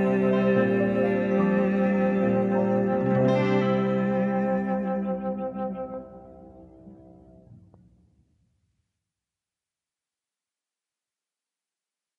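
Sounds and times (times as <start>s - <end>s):
vocals: 0.0s - 7.0s
flute: 0.0s - 7.4s.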